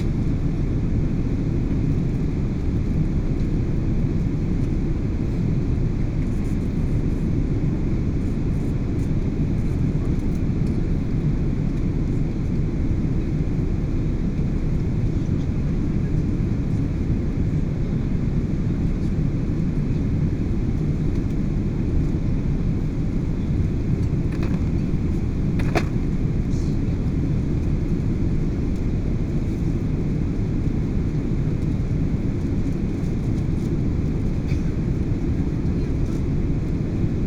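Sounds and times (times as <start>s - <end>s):
Boeing 777 inflight cabin ambience: 0.0s - 37.2s.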